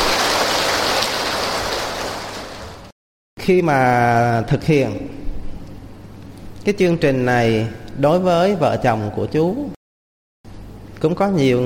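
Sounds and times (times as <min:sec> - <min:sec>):
audience applause: 0:00.0 - 0:02.8
speech: 0:03.4 - 0:05.2, 0:06.6 - 0:09.8, 0:11.0 - 0:11.6.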